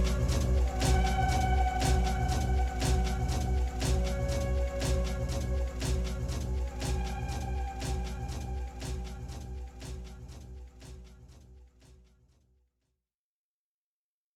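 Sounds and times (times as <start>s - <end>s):
instrumental music: 0.0s - 11.0s.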